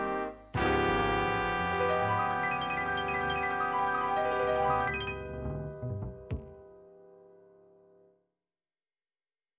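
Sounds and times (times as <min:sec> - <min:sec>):
jazz music: 0:00.0 - 0:06.7.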